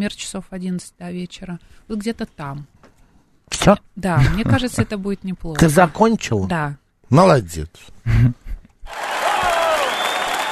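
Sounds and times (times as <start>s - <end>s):
speech: 0.0s - 2.8s, 3.6s - 9.0s
audience applause: 8.9s - 10.5s.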